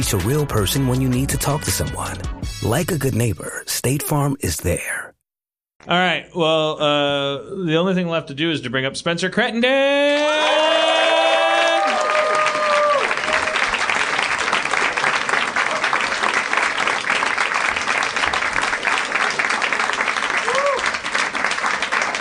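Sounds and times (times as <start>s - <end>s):
speech: 0.0s - 5.1s, 5.8s - 10.8s
whoops and cheers: 9.8s - 13.8s, 20.4s - 21.0s
audience applause: 10.5s - 22.1s.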